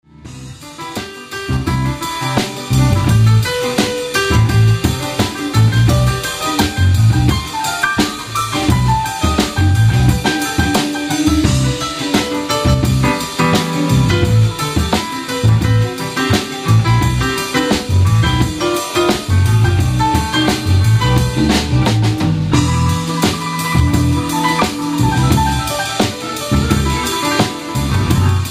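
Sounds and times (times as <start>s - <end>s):
piano: 0.0s - 28.4s.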